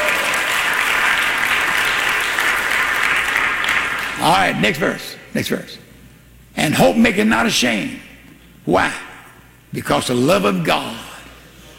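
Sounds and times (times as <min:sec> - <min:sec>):
congregation clapping hands during a church service: 0:00.0 - 0:04.7
speech: 0:04.2 - 0:05.8, 0:06.6 - 0:08.1, 0:08.7 - 0:09.0, 0:09.7 - 0:11.1.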